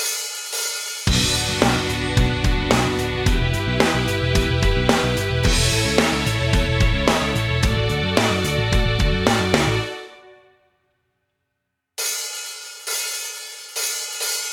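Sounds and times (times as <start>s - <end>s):
karaoke singing: 1.1s - 9.9s.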